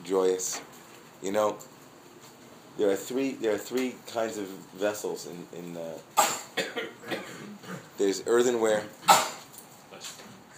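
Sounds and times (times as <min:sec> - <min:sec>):
faint noise: 0:00.0 - 0:10.5
speech: 0:00.1 - 0:01.7, 0:02.8 - 0:06.9, 0:08.0 - 0:09.3
sneeze: 0:06.2 - 0:07.8, 0:09.0 - 0:09.5.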